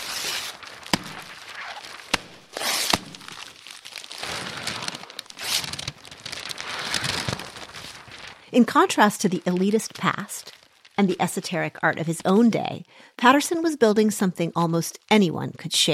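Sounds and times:
paper being crumpled: 0.0 - 12.4
speech: 8.5 - 15.9.

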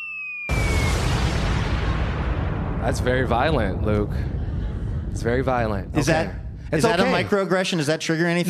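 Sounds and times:
high whistling tone sliding downward: 0.0 - 1.6
bomb explosion boom sound effect: 0.5 - 7.4
speech: 2.8 - 4.4, 5.2 - 8.4.

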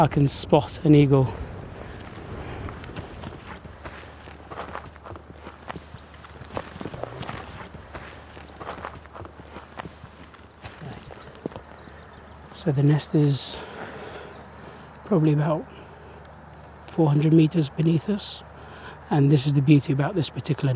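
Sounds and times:
speech: 0.0 - 1.5, 12.7 - 13.7, 15.1 - 15.8, 17.0 - 18.5, 19.1 - 20.7
low rumble: 0.0 - 9.2
footsteps walking up hilly terrain: 1.0 - 15.0.

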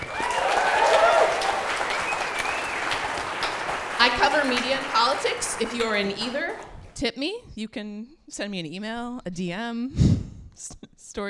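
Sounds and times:
cheers and whistles: 0.0 - 6.3
live audience applause: 0.0 - 6.9
speech: 4.2 - 11.2.

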